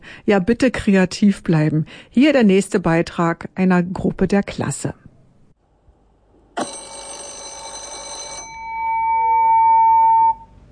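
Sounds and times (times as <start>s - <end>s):
speech: 0.3s - 5.0s, 6.6s - 7.0s
school bell ringing: 6.6s - 10.4s.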